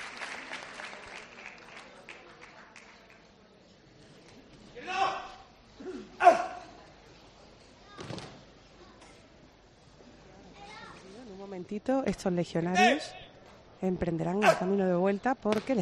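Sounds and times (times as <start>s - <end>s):
crowd applause for the enthroned Christ statue: 0.0s - 3.2s
speech: 11.6s - 13.2s, 13.8s - 15.8s.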